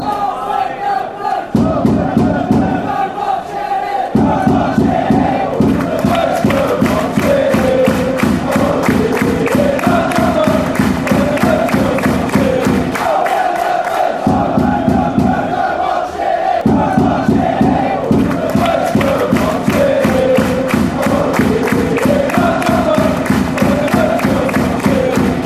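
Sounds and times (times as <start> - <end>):
fans chanting: 0.0 - 25.4.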